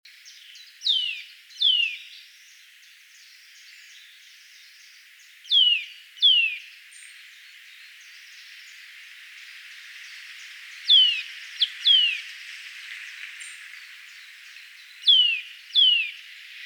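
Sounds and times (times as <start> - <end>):
Eurasian nuthatch calling: 0.8 - 2.1, 5.5 - 6.6, 10.9 - 12.3, 15.0 - 16.3.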